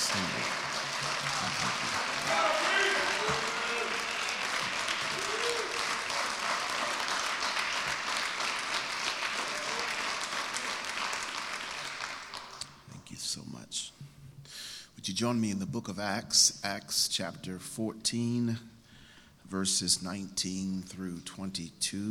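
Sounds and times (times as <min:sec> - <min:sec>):
audience applause: 0:00.0 - 0:12.6
speech: 0:15.2 - 0:18.7, 0:19.5 - 0:22.0.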